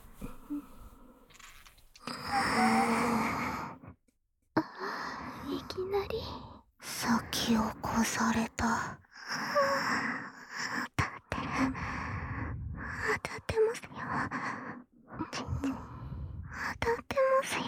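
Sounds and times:
person whispering into the ear: 2.0s - 3.8s, 4.6s - 9.9s, 10.6s - 17.6s
person moaning: 2.1s - 3.4s.

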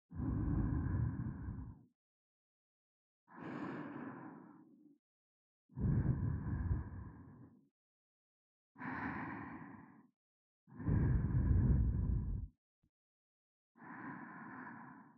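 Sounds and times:
sleeping breathing: 0.2s - 1.8s, 3.3s - 4.7s, 5.8s - 7.6s, 10.8s - 12.5s, 13.8s - 15.1s.

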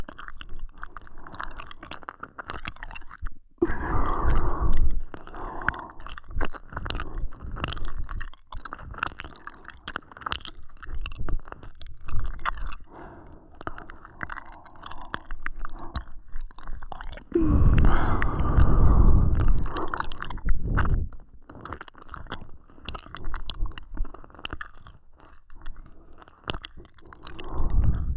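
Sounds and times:
ear licking ASMR in both ears: 3.6s - 7.9s, 12.3s - 28.1s.

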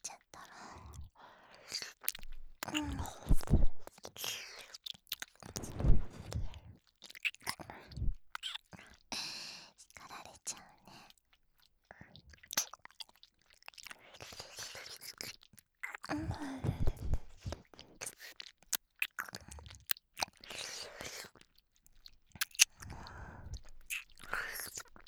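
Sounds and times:
ear licking sounds with left and right reversed: 0.4s - 9.2s, 10.9s - 25.0s
hand stroking sounds: 5.3s - 8.6s, 15.9s - 25.0s.

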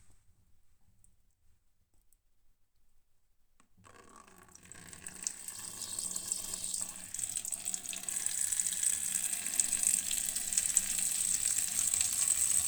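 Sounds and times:
person urinating into a washbasin at a love hotel: 3.9s - 12.6s.

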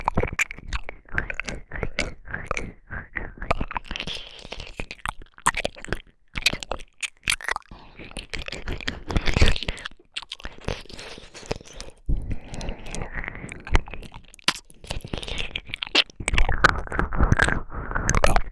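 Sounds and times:
ear licking in the right ear: 0.0s - 18.4s.

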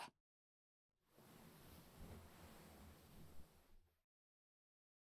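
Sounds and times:
ear massage sounds: 1.1s - 3.8s.

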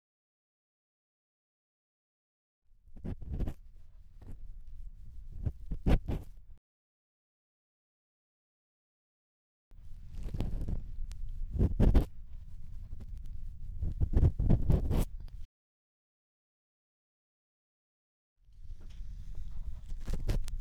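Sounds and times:
bamboo ear pick scraping deep inside right ear: 3.0s - 6.6s, 9.8s - 15.5s, 18.9s - 20.5s.

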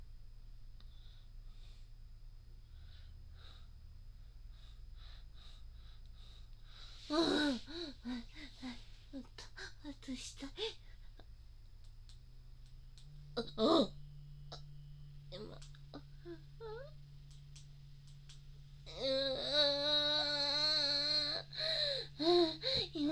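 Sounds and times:
woman moaning: 7.0s - 11.3s, 13.4s - 14.0s, 15.3s - 17.0s, 18.9s - 23.1s.

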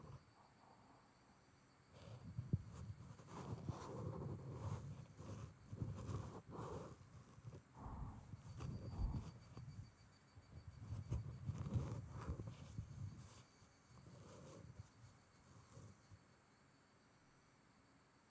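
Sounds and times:
ear pick in right ear: 2.0s - 16.1s.

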